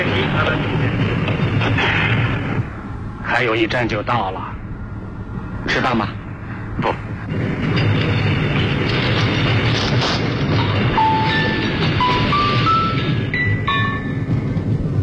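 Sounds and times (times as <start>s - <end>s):
speech: 0.0s - 1.0s, 3.3s - 4.6s, 5.6s - 6.2s, 6.8s - 7.4s
train running on rails: 0.0s - 15.0s
train wheels squealing: 7.4s - 15.0s.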